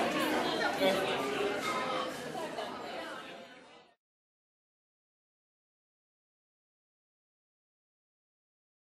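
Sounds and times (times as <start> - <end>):
restaurant ambience: 0.0 - 4.0.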